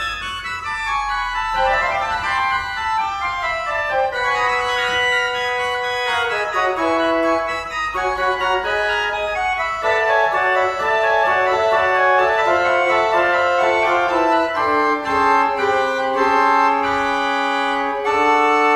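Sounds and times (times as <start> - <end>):
pipe organ playing solo on mixture stop: 0.0 - 18.7.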